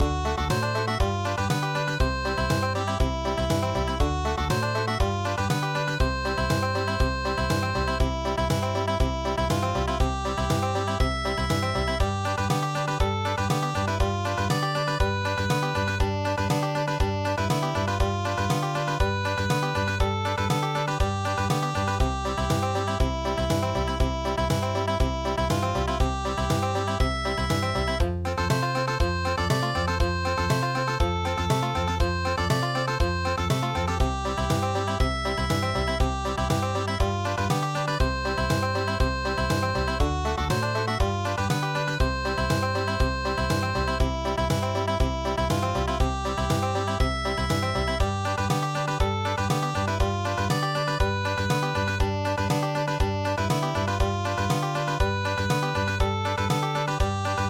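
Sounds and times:
country midi music: 0.0s - 57.4s.

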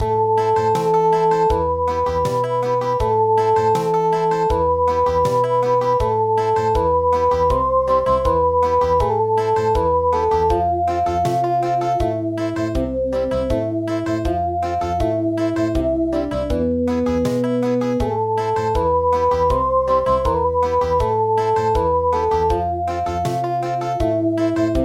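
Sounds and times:
country midi music: 0.0s - 24.8s.

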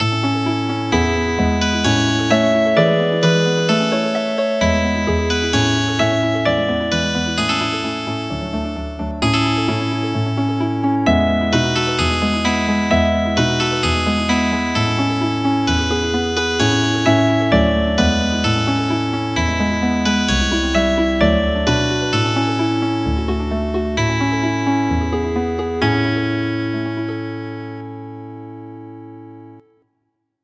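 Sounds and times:
healing harp music: 0.4s - 27.8s.

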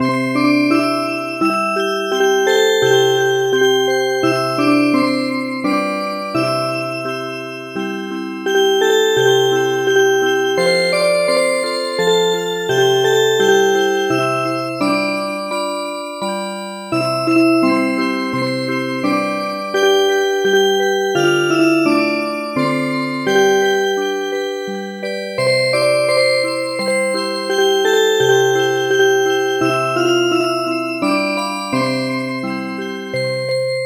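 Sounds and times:
music box: 0.0s - 33.8s.

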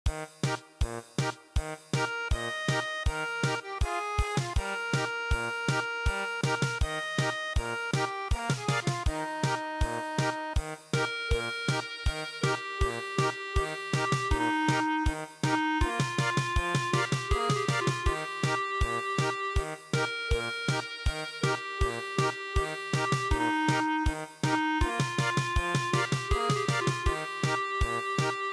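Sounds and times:
German polka music: 0.1s - 28.5s.

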